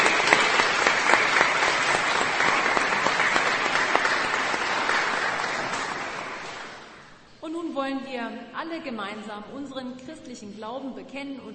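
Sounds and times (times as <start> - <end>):
audience applause: 0.0 - 7.1
speech: 7.9 - 11.5.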